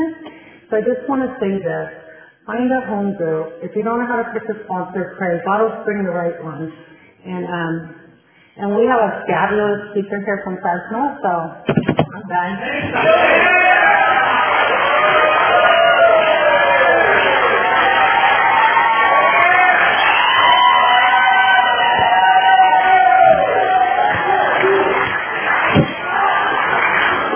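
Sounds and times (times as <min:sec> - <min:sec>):
speech: 0:00.7 - 0:08.0, 0:08.6 - 0:13.7
scattered voices and cheers: 0:12.6 - 0:27.3
audience applause: 0:12.7 - 0:27.3.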